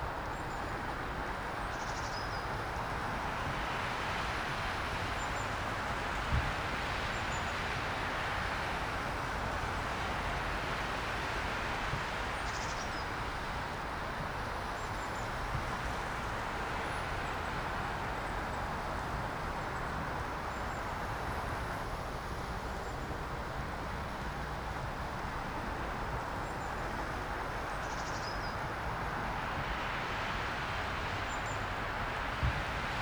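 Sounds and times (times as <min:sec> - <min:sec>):
rain: 0:00.0 - 0:33.0.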